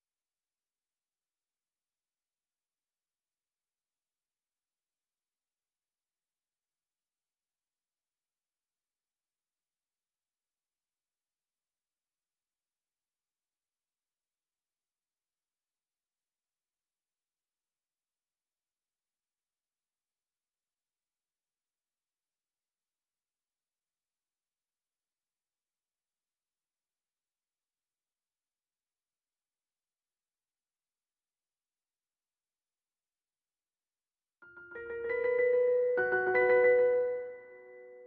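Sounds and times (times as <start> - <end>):
piano piece with effects: 34.4 - 38.0.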